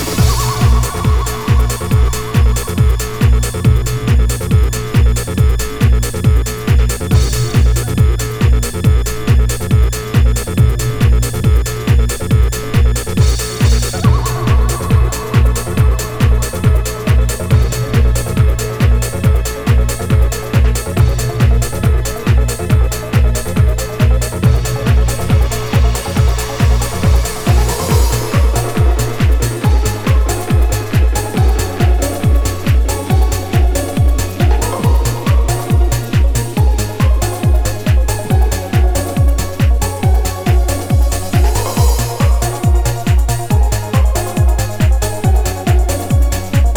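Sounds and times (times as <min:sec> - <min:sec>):
instrumental music: 0:00.0 - 0:46.7.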